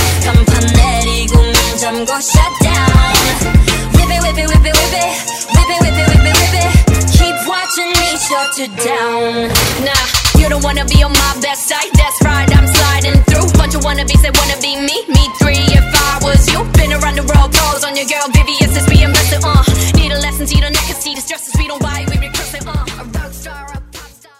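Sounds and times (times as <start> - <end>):
K-pop music: 0.0 - 24.3.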